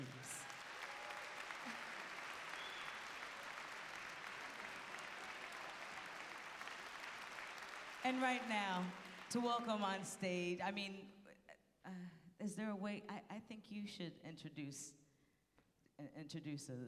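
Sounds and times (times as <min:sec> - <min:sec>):
audience applause: 0:00.0 - 0:09.7
speech: 0:08.0 - 0:11.2, 0:11.9 - 0:15.0, 0:16.0 - 0:16.8.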